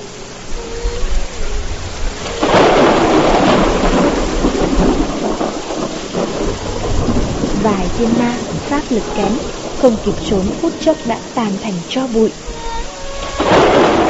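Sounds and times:
heavy rain: 0.0 - 14.0
thunder: 2.0 - 10.6, 13.2 - 14.0
speech: 7.6 - 12.6.

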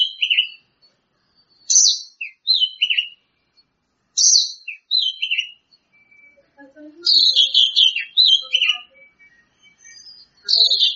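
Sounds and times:
Greater green leafbird song: 0.0 - 0.7, 1.4 - 3.3, 4.2 - 10.9.

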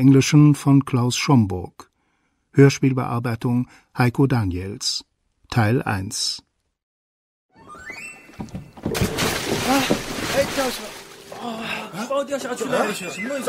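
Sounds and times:
speech: 0.0 - 1.8, 2.6 - 6.5, 8.4 - 13.4
bale splashing into murky harbour water: 8.7 - 11.7
laughter: 11.2 - 13.4.

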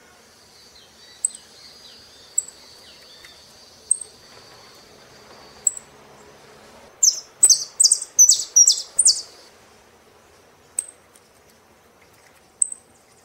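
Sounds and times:
soft background hiss: 0.0 - 13.2
Saffron finch singing: 7.0 - 9.4.

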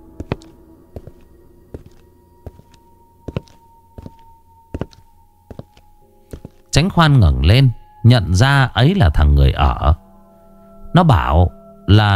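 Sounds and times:
heavy footsteps: 0.1 - 6.7
speech: 6.8 - 10.0, 10.9 - 12.1.

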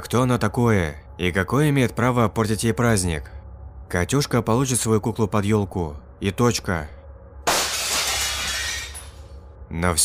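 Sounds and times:
speech: 0.0 - 7.0, 9.7 - 10.0
window glass shattering: 7.5 - 9.3.

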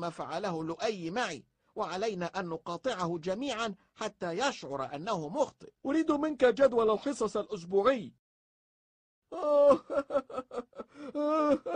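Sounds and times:
speech: 0.0 - 8.2, 9.3 - 11.7
boy crying: 9.3 - 11.7.

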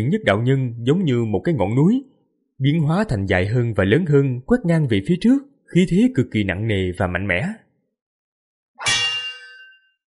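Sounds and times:
speech: 0.0 - 7.6
saber blade ringing with a metallic clang: 8.8 - 10.0.

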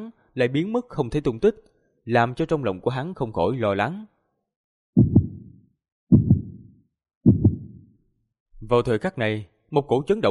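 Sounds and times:
speech: 0.0 - 4.1, 8.6 - 10.2
heartbeat sound effect: 5.0 - 7.9.

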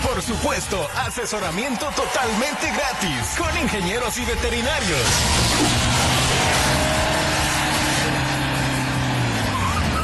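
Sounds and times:
speech: 0.2 - 7.1
road noise: 4.2 - 10.0
car engine rumbling as the vehicle drives up: 4.8 - 10.0.

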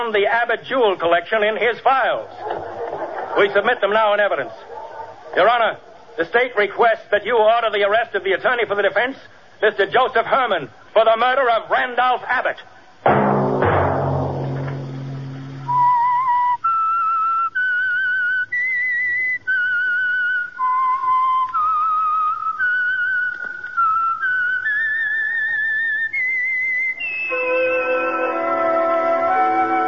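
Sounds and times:
speech: 0.0 - 2.7, 3.4 - 4.7, 5.3 - 13.2
laughter: 2.3 - 5.4
fuller musical chord: 13.1 - 15.9, 27.3 - 29.8
whistled theme tune: 15.4 - 29.8.

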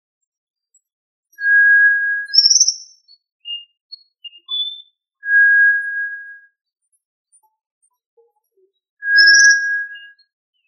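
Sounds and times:
tinamou calling with long flat pure whistles: 1.4 - 2.6, 5.2 - 6.5, 9.0 - 10.2.

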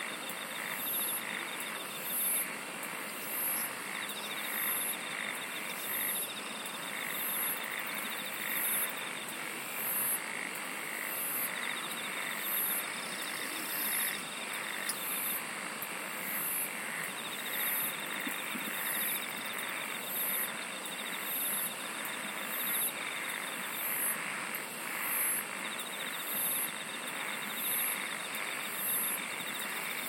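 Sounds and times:
insects ticking trill: 0.0 - 30.0.

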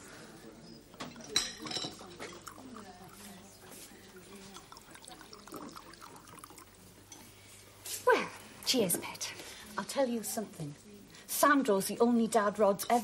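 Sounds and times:
wine glugging and trickling into glasses: 0.4 - 7.7
glass clinking: 0.7 - 7.3
tableware clattering: 1.0 - 2.8
speech: 8.7 - 9.3, 9.9 - 10.8, 11.4 - 13.0.

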